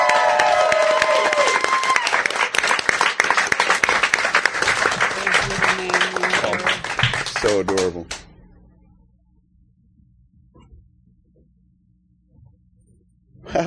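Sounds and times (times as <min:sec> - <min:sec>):
audience applause: 0:00.0 - 0:08.2
speech: 0:07.6 - 0:08.2.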